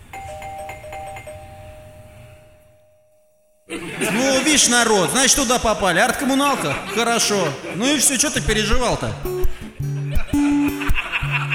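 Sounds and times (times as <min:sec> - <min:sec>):
electronic doorbell at the courtyard entrance of an art space in Kolomna: 0:00.0 - 0:03.7
laughter: 0:03.7 - 0:11.5
speech: 0:04.0 - 0:09.6.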